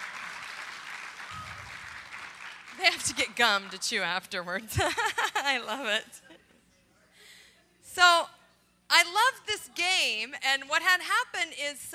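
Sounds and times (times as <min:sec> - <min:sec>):
crowd clapping: 0:00.0 - 0:04.3
speech: 0:02.9 - 0:06.2, 0:08.0 - 0:11.9.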